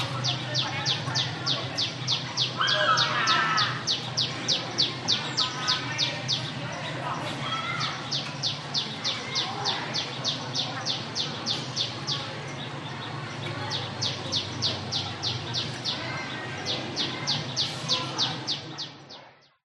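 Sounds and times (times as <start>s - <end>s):
busy school playground children walla in Vietnam: 0.0s - 19.6s.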